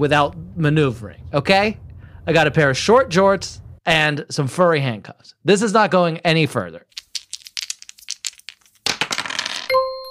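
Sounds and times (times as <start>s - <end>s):
speech: 0.0s - 7.0s
dice being rolled: 6.9s - 9.7s.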